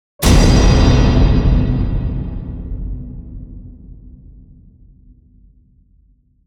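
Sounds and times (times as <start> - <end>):
metal hit: 0.2 - 5.0.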